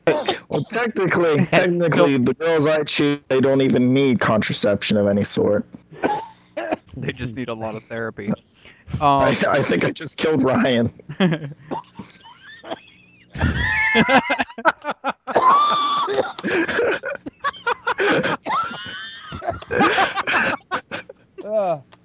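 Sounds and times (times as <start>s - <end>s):
people coughing hard: 0.0s - 2.2s, 6.0s - 6.9s, 13.4s - 14.0s, 15.3s - 21.1s
laughter: 0.0s - 6.2s, 7.0s - 8.4s, 9.2s - 21.2s
speech: 0.1s - 6.0s, 7.0s - 12.2s, 13.4s - 17.2s.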